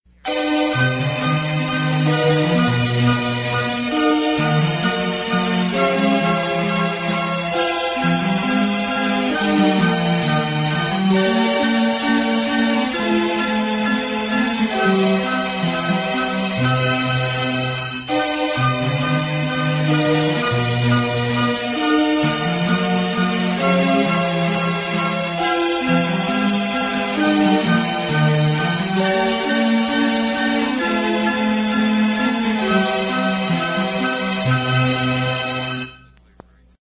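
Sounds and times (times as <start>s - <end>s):
instrumental music: 0.1s - 36.7s.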